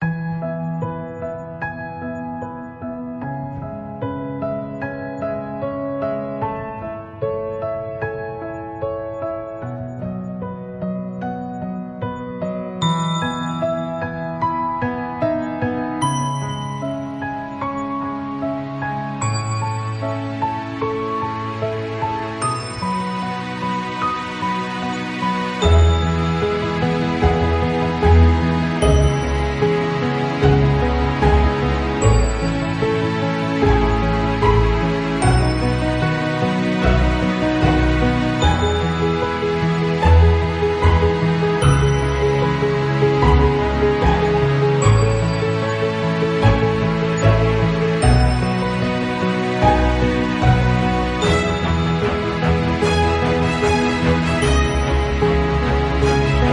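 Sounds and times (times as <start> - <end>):
romantic piano music: 0.0 - 56.5.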